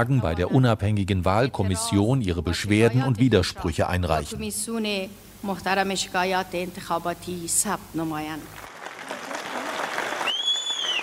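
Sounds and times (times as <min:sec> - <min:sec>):
speech: 0:00.0 - 0:08.7
supporters cheering: 0:08.7 - 0:11.0
shrill whistle: 0:10.2 - 0:11.0.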